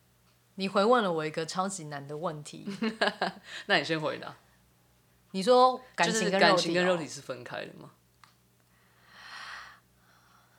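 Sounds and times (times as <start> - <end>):
faint low hum: 0.0 - 10.5
speech: 0.6 - 4.4, 5.3 - 8.0
breathy exhale: 8.9 - 10.5.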